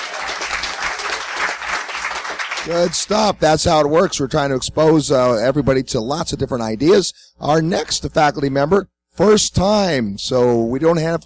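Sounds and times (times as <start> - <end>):
audience applause: 0.0 - 3.1
speech: 2.6 - 11.2.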